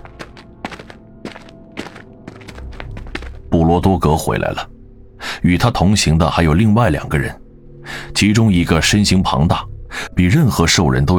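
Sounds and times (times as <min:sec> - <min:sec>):
heavy approaching footsteps: 0:00.0 - 0:04.0
low rumble: 0:02.5 - 0:11.1
speech: 0:03.5 - 0:04.8, 0:05.4 - 0:07.4, 0:08.2 - 0:11.1.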